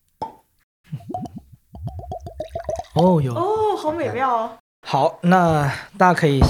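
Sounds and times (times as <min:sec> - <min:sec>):
rum bottle cork popping: 0:00.2 - 0:03.1
rum glugging as it pours out of the bottle: 0:00.9 - 0:03.9
speech: 0:03.0 - 0:06.4.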